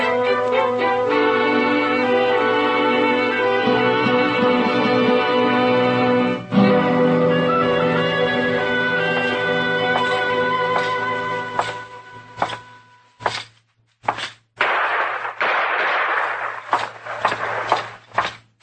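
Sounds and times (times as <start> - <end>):
held musical tone: 0.0 - 12.4
gunshots in a saloon shootout, radio drama sound effect: 14.6 - 18.5.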